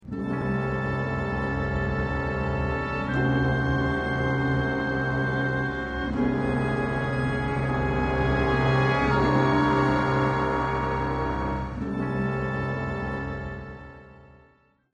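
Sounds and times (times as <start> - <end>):
tense ident music: 0.1 - 13.2.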